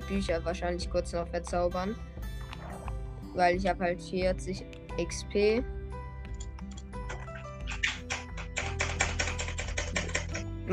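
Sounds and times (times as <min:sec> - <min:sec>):
speech: 0:00.1 - 0:02.2, 0:03.4 - 0:05.8
keyboard keys pressed rapidly: 0:06.3 - 0:10.5.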